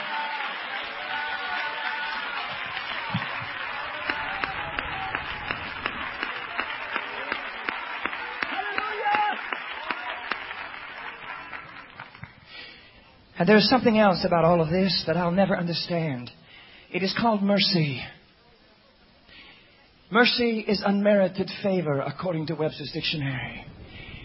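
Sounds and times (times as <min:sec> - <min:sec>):
audience clapping in rhythm: 0:00.0 - 0:12.7
crowd noise and voices: 0:00.0 - 0:13.2
speech: 0:13.4 - 0:18.2, 0:20.1 - 0:23.8.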